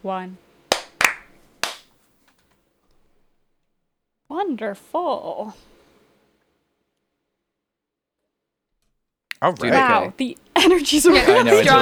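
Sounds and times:
speech: 0.0 - 0.5, 4.3 - 5.7, 9.4 - 11.7
sharp crisp hand claps for audio sync: 0.7 - 2.0, 9.3 - 10.2
laughter: 9.3 - 11.7.

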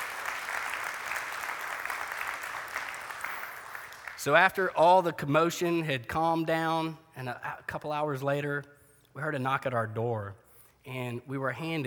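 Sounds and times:
audience applause: 0.0 - 4.2
speech: 4.2 - 11.8.

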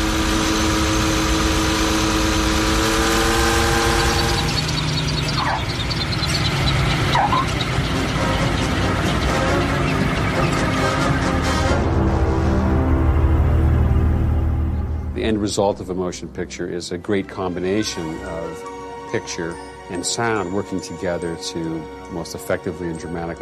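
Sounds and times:
processed airplane engine: 0.0 - 16.0
speech: 15.5 - 23.4.

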